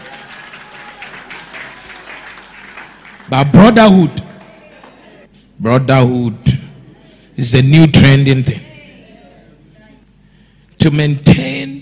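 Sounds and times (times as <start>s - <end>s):
audience applause: 0.0s - 5.3s
faint crowd noise: 0.0s - 5.5s, 6.4s - 11.8s
speech: 3.3s - 4.2s, 5.6s - 6.5s, 7.4s - 8.6s, 10.8s - 11.8s.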